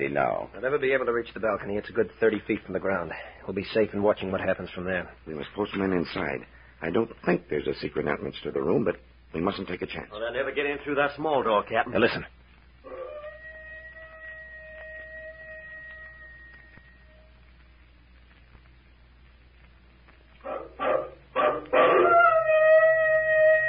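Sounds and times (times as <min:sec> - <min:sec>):
speech: 0:00.0 - 0:12.4
werewolf-like howling call: 0:12.8 - 0:17.3, 0:20.5 - 0:23.6.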